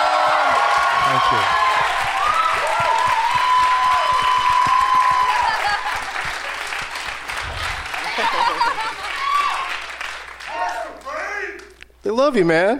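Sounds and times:
audience applause: 0:00.0 - 0:11.3
speech: 0:01.2 - 0:01.6, 0:12.2 - 0:12.7
laughter: 0:05.2 - 0:09.6.

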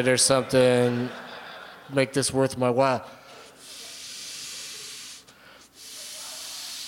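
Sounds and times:
speech: 0:00.0 - 0:01.2, 0:01.9 - 0:03.2
laughter: 0:00.0 - 0:03.9
air hissing while inflating a ball: 0:03.6 - 0:06.8.

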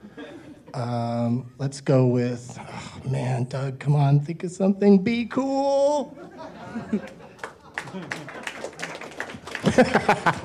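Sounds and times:
speech: 0:00.2 - 0:07.2, 0:07.9 - 0:08.3, 0:09.7 - 0:10.4
people chuckling: 0:06.1 - 0:08.9, 0:09.5 - 0:10.4
scattered audience applause: 0:07.1 - 0:10.4.

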